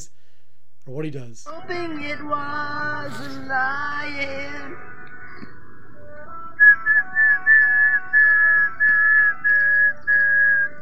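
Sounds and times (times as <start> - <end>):
speech: 0.8 - 5.0
man whistling a slow tune: 6.1 - 10.8.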